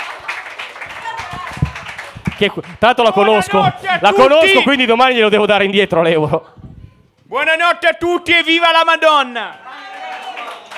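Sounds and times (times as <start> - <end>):
comedy club audience applauding at a stand-up night: 0.0 - 4.0, 9.5 - 10.7
speech: 2.4 - 6.6, 7.3 - 9.6.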